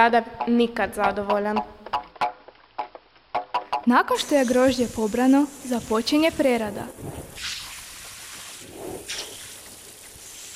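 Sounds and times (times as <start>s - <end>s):
speech: 0.0s - 1.8s, 3.9s - 7.6s
water washing wine vats: 4.1s - 10.5s.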